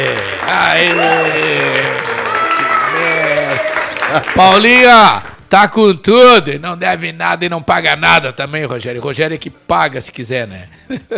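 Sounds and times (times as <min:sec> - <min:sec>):
speech: 0:00.0 - 0:01.6, 0:04.1 - 0:11.1
people cheering: 0:00.0 - 0:05.3
applause: 0:00.0 - 0:05.4.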